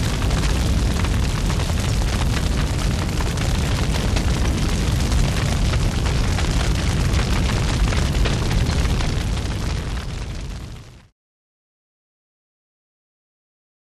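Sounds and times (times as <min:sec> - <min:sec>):
big fire burning: 0:00.0 - 0:11.1.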